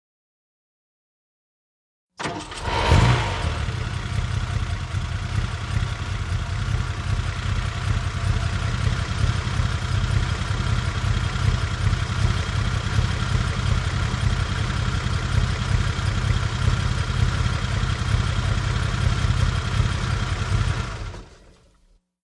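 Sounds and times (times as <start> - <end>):
Aston Martin engine starting idling and switching off: 2.2 - 21.8.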